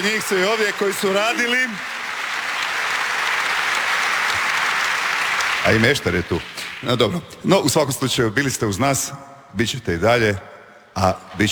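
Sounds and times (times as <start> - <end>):
speech: 0.0 - 2.0, 5.6 - 11.5
TV studio audience applause for the Dobro jutro Hrvatska show: 0.0 - 7.4.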